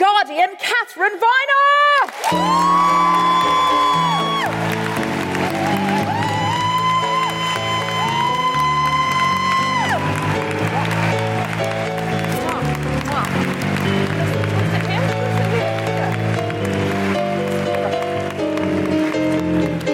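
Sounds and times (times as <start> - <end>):
speech: 0.0 - 1.6
audience applauding at a Guardian Live event: 1.9 - 19.9
audience cheering and whooping in welcome at a Guardian Live event: 2.2 - 13.6.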